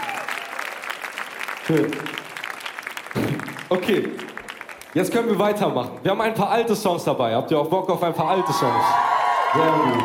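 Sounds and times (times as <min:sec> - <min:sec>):
audience applause: 0:00.0 - 0:05.6, 0:08.6 - 0:10.0
speech: 0:01.7 - 0:02.2, 0:03.7 - 0:04.3, 0:04.9 - 0:10.0.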